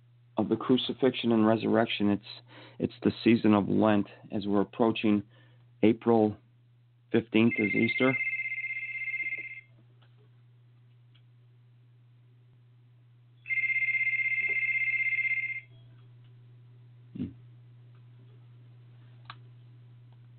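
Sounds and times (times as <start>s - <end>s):
speech: 0.4s - 6.4s, 7.1s - 8.2s
telephone ringing: 7.4s - 9.7s, 13.4s - 15.9s.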